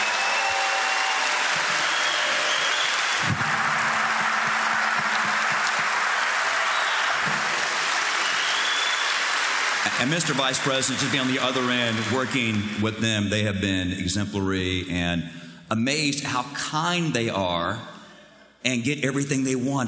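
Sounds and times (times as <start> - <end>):
large crowd applause: 0.0 - 12.9
speech: 9.9 - 17.9, 18.6 - 19.8.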